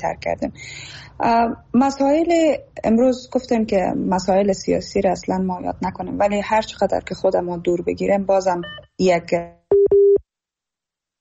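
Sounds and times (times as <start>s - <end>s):
speech: 0.0s - 9.6s
telephone busy tone after a dropped call: 8.6s - 8.9s, 9.7s - 10.2s.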